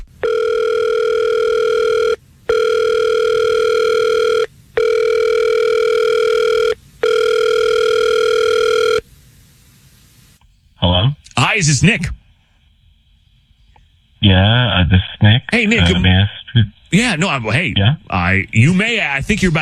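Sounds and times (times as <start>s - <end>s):
outgoing phone call ringing: 0.0s - 9.1s
speech: 11.6s - 12.2s, 14.4s - 19.6s.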